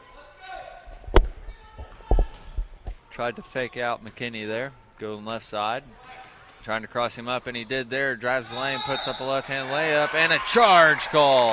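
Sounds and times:
basketball dribbled on the court during a college game: 1.0 - 3.0
speech: 3.2 - 6.0, 6.6 - 11.5.

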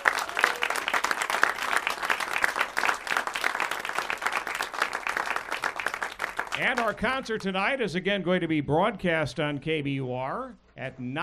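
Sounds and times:
audience applause: 0.0 - 7.0
speech: 6.6 - 11.2.

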